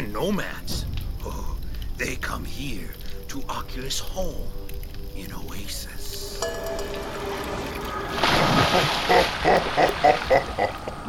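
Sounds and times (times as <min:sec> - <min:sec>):
speech: 0:00.2 - 0:01.4, 0:02.0 - 0:07.1, 0:08.1 - 0:11.0
water splashing from swimming: 0:06.8 - 0:11.0.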